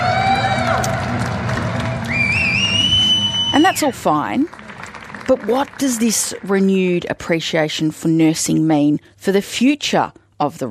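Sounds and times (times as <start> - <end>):
communities clapping in appreciation: 0.0 - 7.3
speech: 3.6 - 4.6, 5.3 - 10.6.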